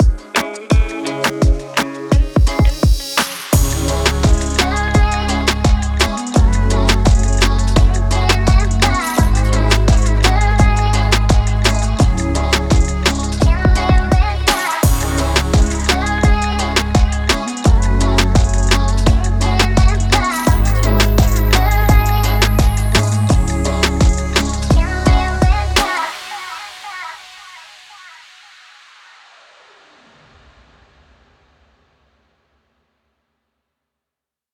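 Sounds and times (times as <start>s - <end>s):
music track: 0.0s - 26.3s.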